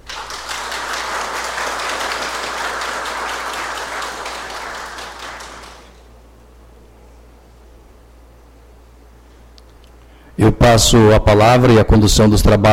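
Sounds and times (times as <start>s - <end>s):
applause at a swearing-in ceremony: 0.0s - 6.1s
speech: 10.7s - 12.7s.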